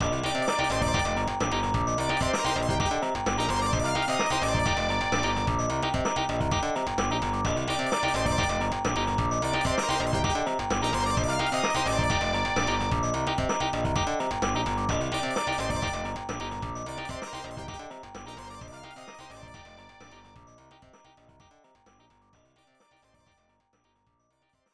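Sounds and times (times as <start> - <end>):
allegro classical piece: 0.0 - 20.4.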